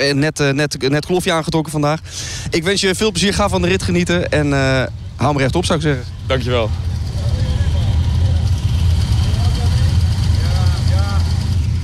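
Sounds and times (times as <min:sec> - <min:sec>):
speech: 0:00.0 - 0:06.9
Harley-Davidson Sportster motorcycle engine rumbling: 0:00.8 - 0:11.8.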